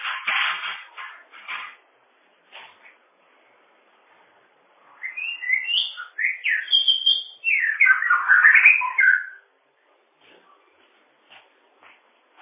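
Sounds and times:
bird song: 4.8 - 9.5.

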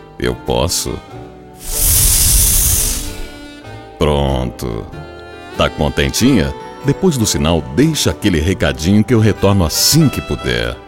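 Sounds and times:
speech: 0.2 - 1.8, 4.0 - 10.8
soft breath blown into the listener's ear: 1.6 - 3.6.

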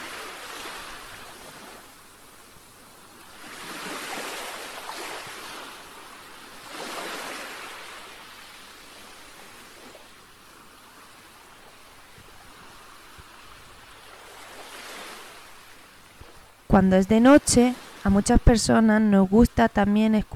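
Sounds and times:
sea waves breaking on shore: 3.2 - 10.1, 12.4 - 20.3
speech: 16.7 - 20.3.

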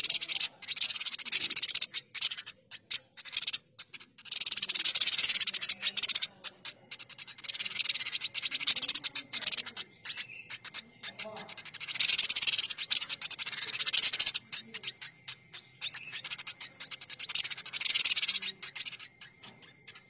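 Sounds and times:
streaked spiderhunter rasping chattering song: 0.0 - 20.0.

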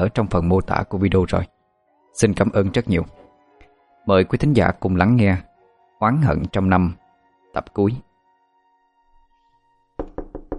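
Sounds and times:
speech: 0.0 - 1.6, 2.2 - 3.2, 4.0 - 7.0, 7.6 - 8.1
knocking on a door: 10.0 - 10.5.

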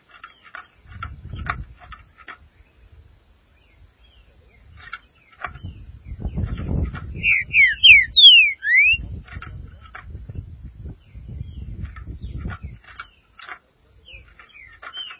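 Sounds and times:
green-winged saltator whistling: 7.2 - 9.0.

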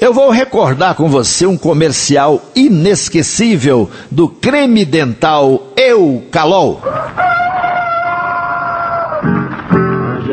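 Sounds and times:
speech: 0.0 - 7.2
rooster crowing in an old Eucalol toothpaste commercial: 6.8 - 9.4.

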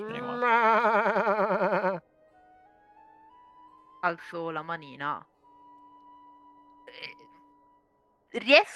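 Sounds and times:
voice imitating an animal call between a bleat and a moo: 0.0 - 2.0
speech: 4.0 - 5.3, 8.3 - 8.7.

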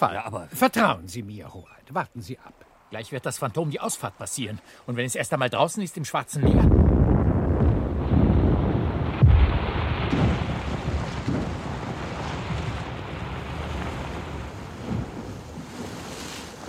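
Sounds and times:
speech: 0.0 - 7.2
muffled underwater explosion: 6.4 - 15.2.

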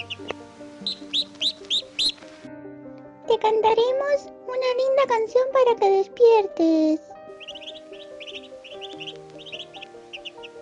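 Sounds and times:
small birds chirping with bright high tweets: 0.0 - 2.4, 7.2 - 10.6
soft steady tonal background: 0.0 - 10.6
speech: 3.4 - 7.2.

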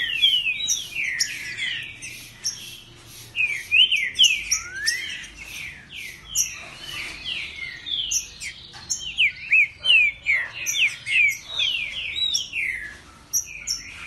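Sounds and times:
Green-winged Saltator singing territorial whistles: 0.0 - 13.9.

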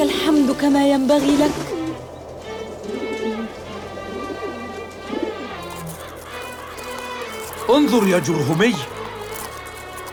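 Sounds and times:
speech: 0.6 - 1.7, 7.7 - 9.0
birds cooing: 2.6 - 7.5.

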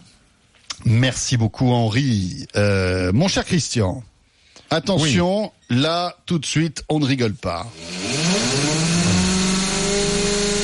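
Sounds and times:
speech: 0.8 - 4.1, 4.7 - 8.2
loud power drill running: 7.7 - 10.6.

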